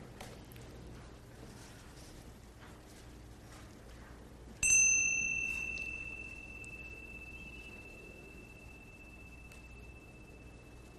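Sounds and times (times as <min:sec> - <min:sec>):
mindfulness chime being rung: 0:04.6 - 0:10.9.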